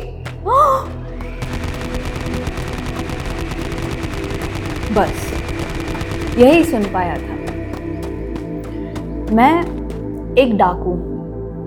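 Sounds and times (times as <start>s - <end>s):
gunshots sound effect: 1.2s - 10.0s
speech: 5.0s - 5.2s, 6.4s - 7.3s, 9.3s - 9.8s, 10.4s - 11.1s.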